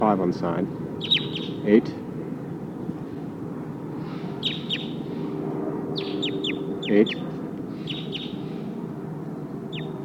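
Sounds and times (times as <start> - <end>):
speech: 0.0 - 2.0, 6.9 - 7.2
steady low rumble: 0.0 - 10.0
wild bird chirping in the trees: 1.0 - 1.6, 4.1 - 5.1, 5.9 - 8.6, 9.3 - 10.0.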